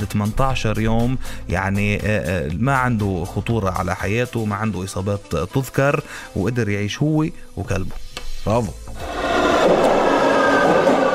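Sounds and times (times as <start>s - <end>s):
speech: 0.0s - 9.2s
metro train sound effect rumbling with a whining overtone: 9.1s - 11.1s.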